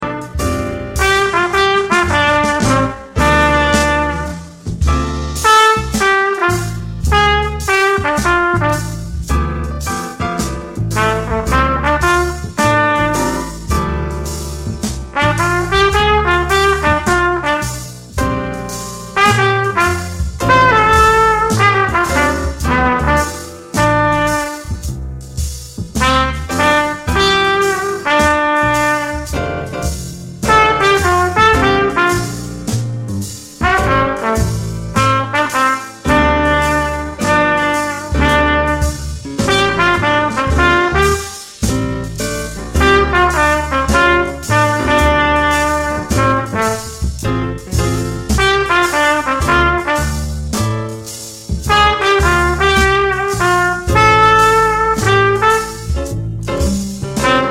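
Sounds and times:
funky play-along backing track with backing vocals: 0.0 - 57.5.

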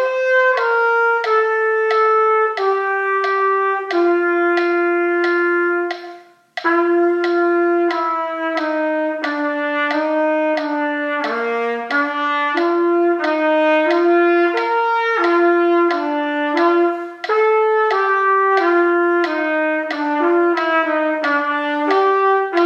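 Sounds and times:
trumpet playing a serenade: 0.0 - 22.6.

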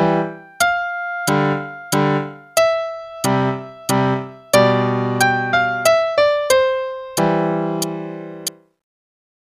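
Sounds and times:
scale waltz: 0.0 - 8.6.

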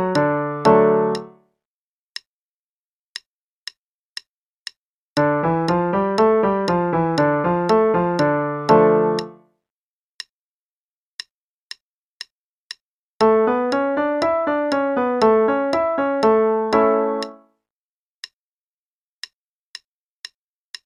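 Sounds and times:
5 finger patterns in F, C, G, D, A, E: 0.0 - 1.4, 5.2 - 9.5, 13.2 - 17.4.

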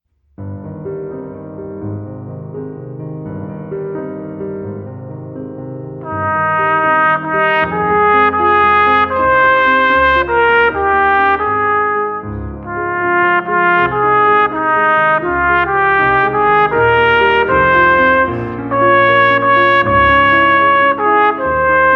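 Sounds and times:
trumpet: 6.0 - 21.9.

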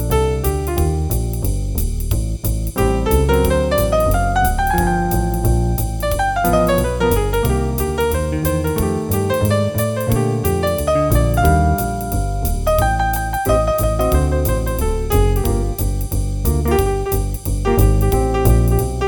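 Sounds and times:
jazz piano improvisation play-along: 0.0 - 19.0.

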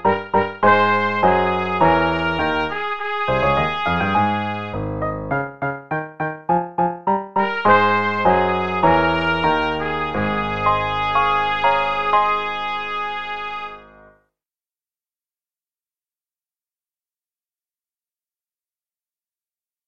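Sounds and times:
trumpet playing a march without dynamics: 0.0 - 5.6, 6.6 - 14.1.

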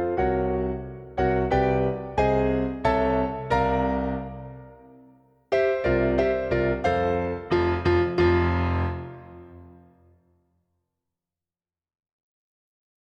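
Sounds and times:
piano playing: 0.0 - 10.0.

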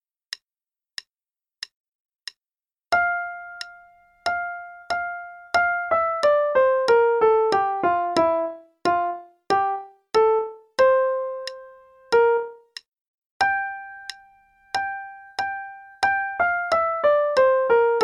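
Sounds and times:
right hand sonatina melody in F: 3.0 - 12.8, 13.4 - 18.0.

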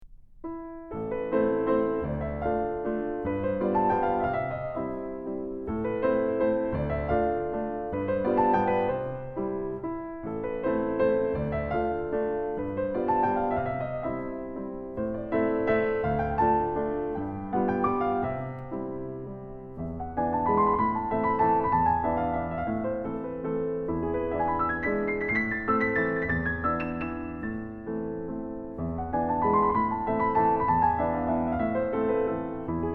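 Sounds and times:
waltz in A minor: 0.5 - 32.9.

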